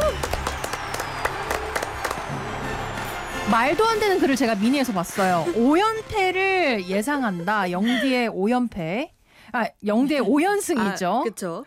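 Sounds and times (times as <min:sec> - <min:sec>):
crowd applause: 0:00.0 - 0:06.4
speech: 0:03.5 - 0:11.6.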